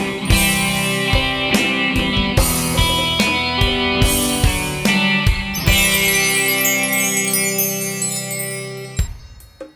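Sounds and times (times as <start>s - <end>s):
ambient electric guitar music: 0.0s - 9.1s.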